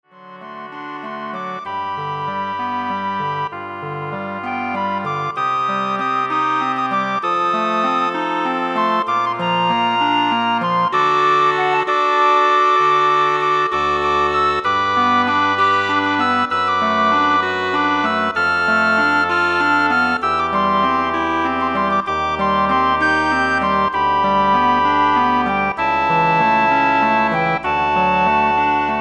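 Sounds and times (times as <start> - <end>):
woodwind ensemble: 0.1 - 28.9.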